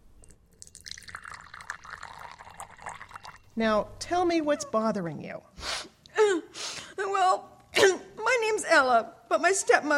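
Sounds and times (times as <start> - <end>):
lemonade pouring into a glass: 0.2 - 3.6
speech: 3.6 - 5.5, 7.0 - 7.5, 8.5 - 9.9.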